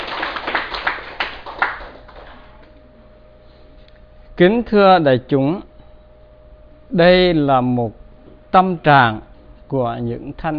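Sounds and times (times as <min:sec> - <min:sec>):
audience applause: 0:00.0 - 0:02.7
speech: 0:04.4 - 0:05.7, 0:06.9 - 0:10.5.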